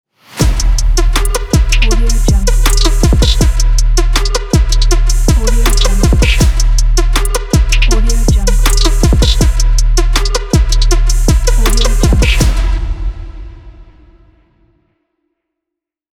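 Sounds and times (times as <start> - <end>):
rap logo jingle: 0.4 - 13.3.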